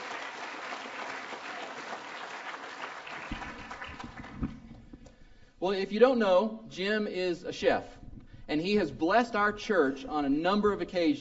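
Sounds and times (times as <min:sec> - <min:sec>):
audience applause welcoming a guest chef at a church gathering: 0:00.0 - 0:04.8
speech: 0:05.6 - 0:11.1.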